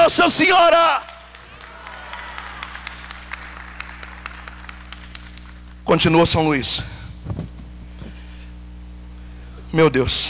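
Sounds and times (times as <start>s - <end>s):
speech: 0.1s - 1.2s, 5.9s - 7.5s, 9.7s - 10.2s
audience applause: 1.0s - 5.7s.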